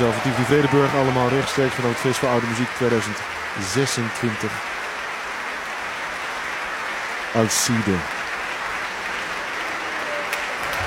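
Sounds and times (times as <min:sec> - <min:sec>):
concert audience applauding in the large hall of Tivoli Vredenburg: 0:00.0 - 0:10.8
speech: 0:00.1 - 0:04.8, 0:07.3 - 0:08.2.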